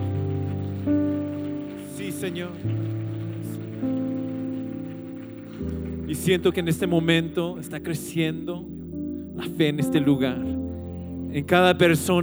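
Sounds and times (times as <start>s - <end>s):
audience applause: 0.0s - 8.3s
sustained keyboard chords: 0.0s - 12.2s
speech: 2.2s - 2.9s, 6.1s - 8.8s, 9.4s - 10.6s, 11.3s - 12.2s.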